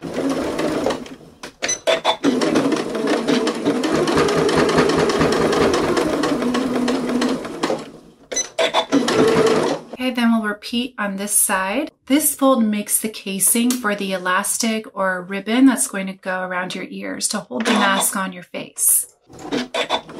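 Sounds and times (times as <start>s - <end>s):
sewing machine top-stitching fabric for a face mask: 0.0s - 10.0s, 17.6s - 18.1s, 19.2s - 20.1s
speech: 10.6s - 20.1s.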